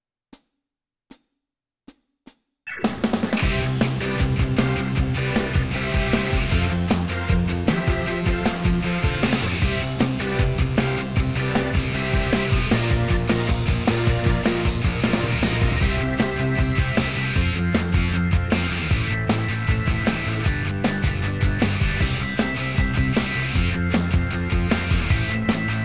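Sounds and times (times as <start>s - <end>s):
rock backing track: 2.8s - 25.8s.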